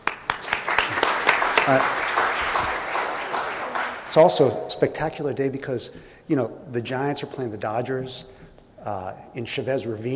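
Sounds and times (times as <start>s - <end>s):
small group giving soft polite applause: 0.0s - 4.6s
speech: 1.6s - 2.0s, 4.1s - 10.1s.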